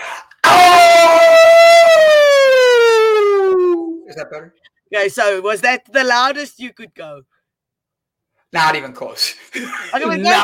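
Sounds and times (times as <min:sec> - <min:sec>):
person howling loudly: 0:00.4 - 0:04.1
speech: 0:04.3 - 0:07.4, 0:08.5 - 0:10.4.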